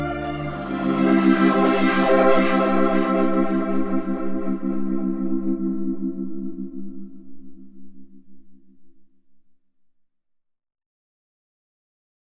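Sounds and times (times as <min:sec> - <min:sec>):
Yamaha SY77 synth pads: 0:00.0 - 0:08.0.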